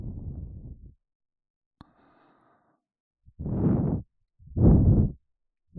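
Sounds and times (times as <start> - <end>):
ear cleaning in the left ear: 3.4 - 5.2.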